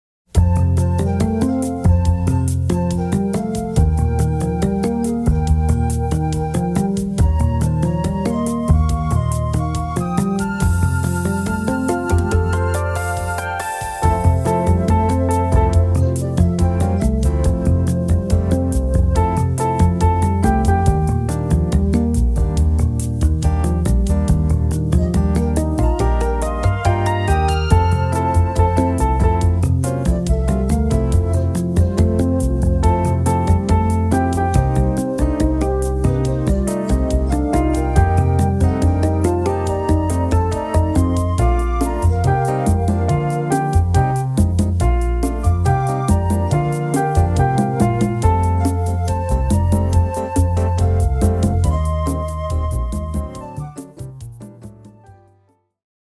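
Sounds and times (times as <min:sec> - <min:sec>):
melody: 0:00.4 - 0:53.8.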